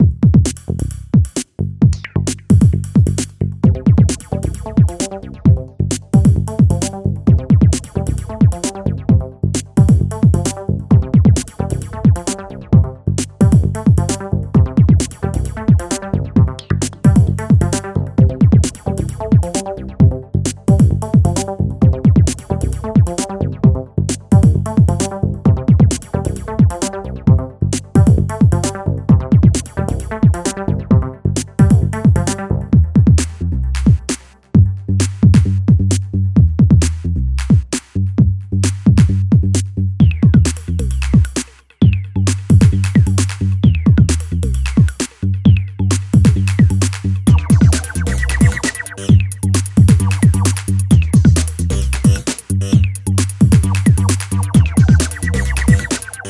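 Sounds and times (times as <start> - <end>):
boombox beats: 0.0 - 56.2.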